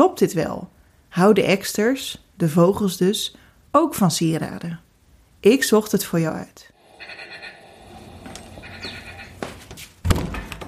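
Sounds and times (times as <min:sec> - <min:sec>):
speech: 0:00.2 - 0:04.8, 0:05.4 - 0:07.2
outdoor rustling: 0:06.8 - 0:10.6
door shutting: 0:07.9 - 0:10.6.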